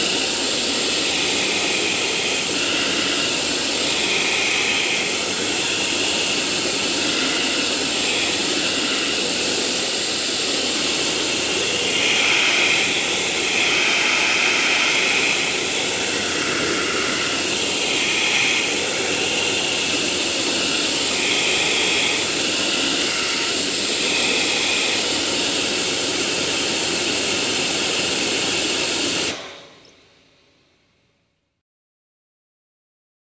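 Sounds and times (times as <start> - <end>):
vacuum cleaner: 0.0 - 30.1.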